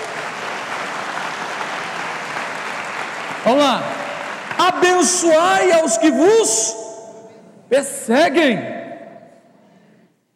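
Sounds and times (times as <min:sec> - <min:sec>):
audience applause: 0:00.0 - 0:05.2
speech: 0:03.5 - 0:04.0, 0:04.6 - 0:06.8, 0:07.7 - 0:08.8.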